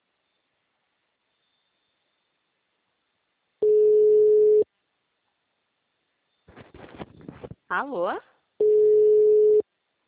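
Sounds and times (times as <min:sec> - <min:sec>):
telephone line tone after a call is hung up: 0:03.6 - 0:04.6, 0:08.6 - 0:09.6
speech: 0:07.7 - 0:08.3.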